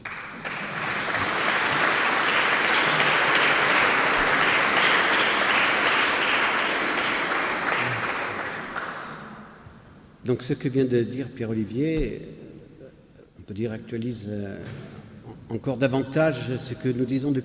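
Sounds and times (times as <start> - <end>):
audience applause: 0.0 - 9.6
speech: 10.3 - 12.4, 13.5 - 17.4.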